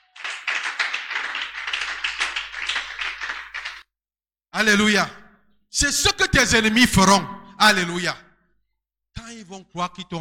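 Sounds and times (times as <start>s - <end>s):
audience applauding and acclaiming: 0.0s - 3.9s
speech: 4.6s - 8.2s, 9.4s - 10.1s.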